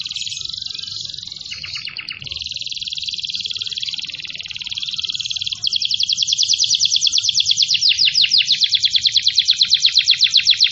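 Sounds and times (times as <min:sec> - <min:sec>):
domestic canary singing energetically: 0:00.0 - 0:10.6.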